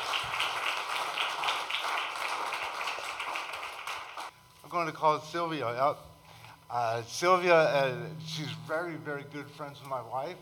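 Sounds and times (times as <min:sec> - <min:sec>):
audience applause: 0:00.0 - 0:04.3
speech: 0:04.7 - 0:06.1, 0:06.7 - 0:10.4.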